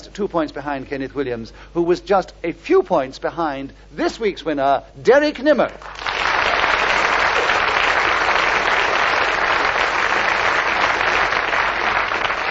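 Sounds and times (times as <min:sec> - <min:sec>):
speech: 0:00.2 - 0:06.0
studio audience applause: 0:05.8 - 0:12.5.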